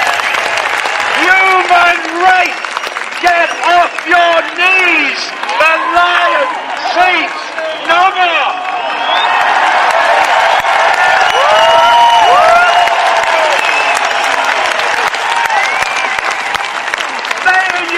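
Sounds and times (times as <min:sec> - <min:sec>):
protest crowd applauding and cheering: 0:00.0 - 0:17.9
speech: 0:01.6 - 0:02.6, 0:03.2 - 0:09.3
whoops and shouts or whistles: 0:08.6 - 0:09.5, 0:11.2 - 0:14.5, 0:15.5 - 0:16.5.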